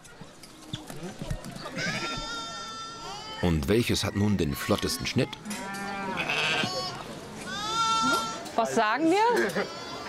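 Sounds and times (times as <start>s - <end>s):
speech: 3.4s - 5.8s, 8.6s - 9.8s
sheep bleating: 5.6s - 8.4s.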